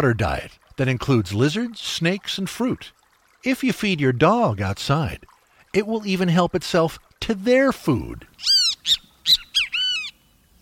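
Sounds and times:
speech: 0:00.0 - 0:09.4
Great Kiskadee calling: 0:08.4 - 0:10.3.

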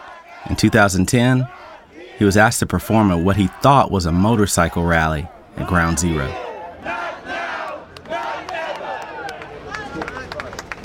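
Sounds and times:
protest rally crowd shouting: 0:00.0 - 0:10.0
speech: 0:00.4 - 0:06.4
clapping: 0:07.6 - 0:10.8.

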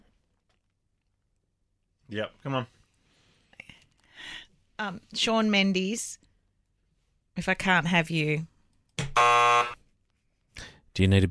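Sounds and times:
speech: 0:02.1 - 0:02.8, 0:04.8 - 0:06.2, 0:07.4 - 0:08.5, 0:11.0 - 0:11.2
quiz game buzzer: 0:09.1 - 0:09.8.

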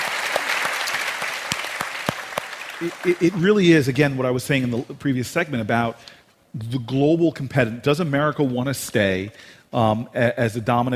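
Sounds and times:
audience applause: 0:00.0 - 0:03.6
speech: 0:02.8 - 0:10.9.

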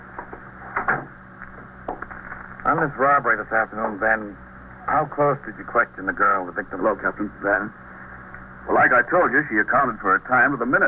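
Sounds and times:
door pushed shut with a dull thud: 0:00.8 - 0:01.1
speech: 0:02.7 - 0:07.8, 0:08.7 - 0:10.8.

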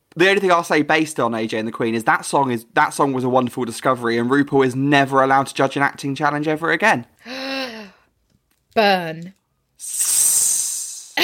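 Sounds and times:
speech: 0:00.2 - 0:07.8, 0:08.8 - 0:10.3
sizzling hiss sound effect: 0:09.8 - 0:11.2.

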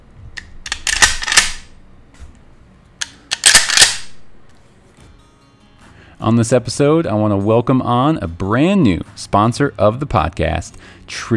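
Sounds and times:
shotgun slide racking: 0:00.4 - 0:01.8, 0:03.0 - 0:04.6
speech: 0:06.2 - 0:11.3.

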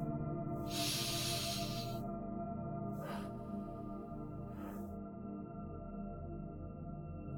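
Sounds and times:
gentle sustained music bed: 0:00.0 - 0:07.3
deep breathing in a guided meditation: 0:00.7 - 0:02.0, 0:03.0 - 0:03.8.

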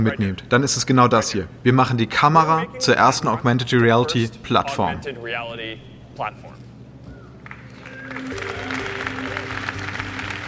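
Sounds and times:
speech: 0:00.0 - 0:06.6, 0:08.1 - 0:08.8
audience applauding at a keynote: 0:07.4 - 0:10.4.

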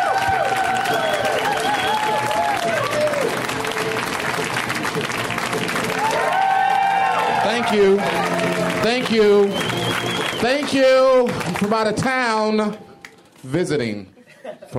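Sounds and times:
audience whoops and cheers at a comedy show: 0:00.0 - 0:03.5, 0:05.9 - 0:08.8
audience applause welcoming a comedian at a comedy show: 0:00.0 - 0:13.2
speech: 0:07.7 - 0:14.7.

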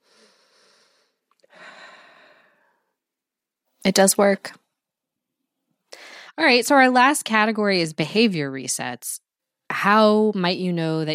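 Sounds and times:
physiological sigh with two quick inhales and long exhale: 0:00.0 - 0:02.8
speech: 0:03.9 - 0:04.6, 0:06.4 - 0:11.1.

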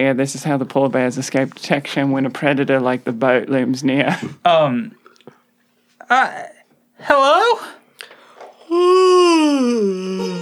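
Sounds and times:
speech: 0:00.0 - 0:05.0, 0:06.1 - 0:07.8, 0:08.7 - 0:10.4
person yawning: 0:08.6 - 0:10.4.

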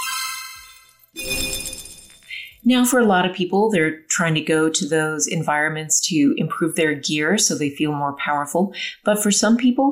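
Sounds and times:
chime-like tone of a video game item drop: 0:00.0 - 0:02.6
speech: 0:02.7 - 0:09.9.

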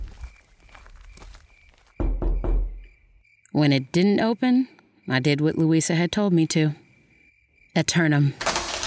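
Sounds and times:
footsteps approaching a door: 0:00.0 - 0:02.9
speech: 0:03.6 - 0:06.8, 0:07.8 - 0:08.4.

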